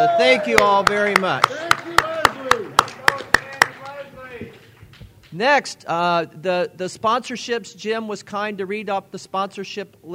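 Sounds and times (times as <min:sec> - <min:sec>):
speech: 0:00.0 - 0:01.6, 0:05.4 - 0:10.1
audience applause: 0:00.0 - 0:04.6.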